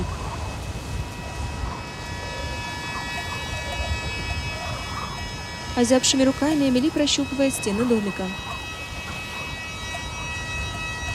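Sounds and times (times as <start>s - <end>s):
gusty wind blowing: 0.0s - 11.1s
speech: 5.8s - 8.5s.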